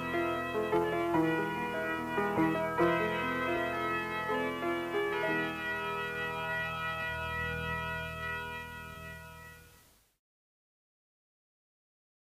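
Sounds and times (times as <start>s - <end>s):
synth prelude: 0.0s - 9.8s.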